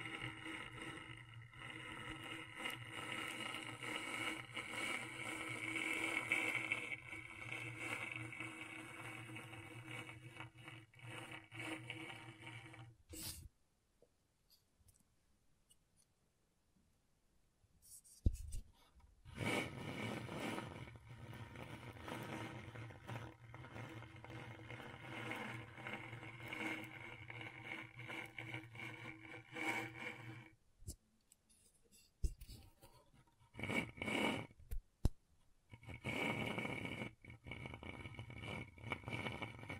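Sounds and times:
scratchboard scraping: 0.0 - 13.5, 19.3 - 30.6, 32.4 - 34.6, 35.7 - 39.7.

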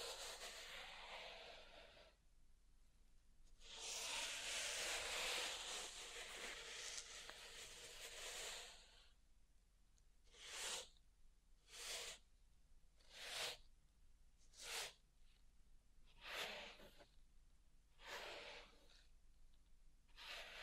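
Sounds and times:
pink salt raked and brushed through a zen garden: 0.0 - 1.9, 3.6 - 9.0, 10.3 - 10.9, 11.7 - 12.2, 13.1 - 13.6, 14.6 - 15.0, 16.2 - 17.0, 18.0 - 19.0, 20.2 - 20.6.

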